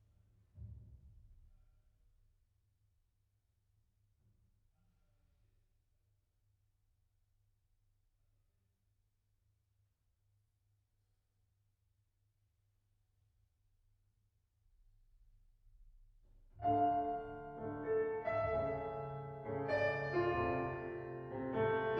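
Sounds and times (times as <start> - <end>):
piano: 16.5 - 21.9.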